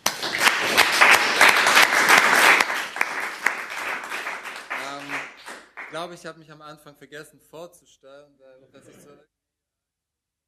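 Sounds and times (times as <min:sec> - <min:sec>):
applause for participants: 0:00.0 - 0:06.1
speech: 0:06.0 - 0:09.4.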